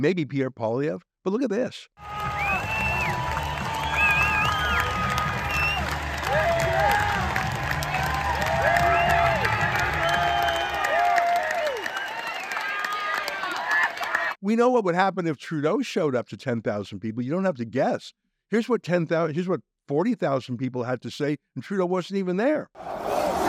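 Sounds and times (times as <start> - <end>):
speech: 0.0 - 2.3, 14.4 - 23.0
large crowd applauding: 2.0 - 14.4.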